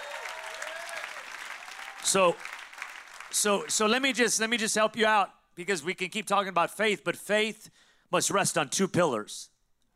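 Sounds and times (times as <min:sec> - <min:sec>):
audience applause: 0:00.0 - 0:04.1
speech: 0:02.0 - 0:02.6, 0:03.3 - 0:09.5.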